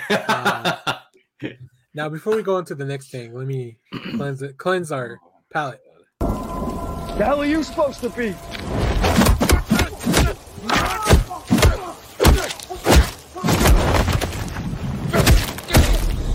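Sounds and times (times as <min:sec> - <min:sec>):
laughter: 0:00.0 - 0:01.6
speech: 0:00.1 - 0:00.8, 0:01.4 - 0:06.4, 0:07.2 - 0:09.3
punches: 0:09.0 - 0:14.5, 0:15.1 - 0:16.2.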